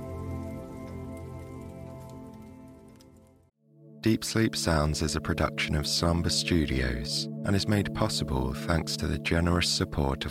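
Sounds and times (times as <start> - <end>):
fireplace fire crackling: 0.0 - 3.5
speech: 4.0 - 10.3.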